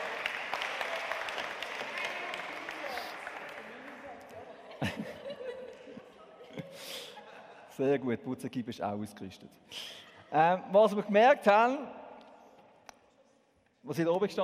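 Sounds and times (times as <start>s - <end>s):
audience applause: 0.0s - 4.9s
laughter: 4.3s - 7.9s
speech: 7.8s - 12.0s, 13.8s - 14.4s.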